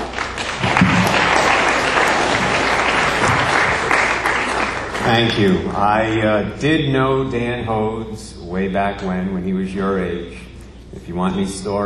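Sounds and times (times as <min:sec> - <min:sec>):
audience applauding to welcome a priest: 0:00.0 - 0:06.2
speech: 0:05.1 - 0:11.8.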